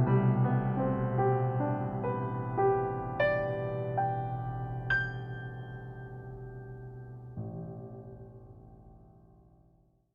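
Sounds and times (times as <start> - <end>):
Yamaha C7: 0.0 - 10.1.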